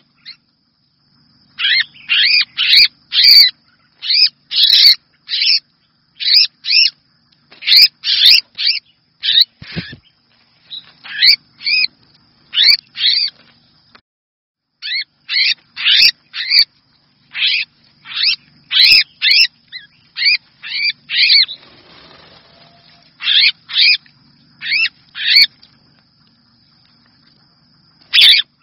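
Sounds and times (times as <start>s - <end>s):
red-whiskered bulbul distress call: 1.5s - 7.0s, 7.6s - 11.9s, 12.5s - 13.4s, 14.8s - 24.0s, 24.6s - 25.5s, 28.1s - 28.6s.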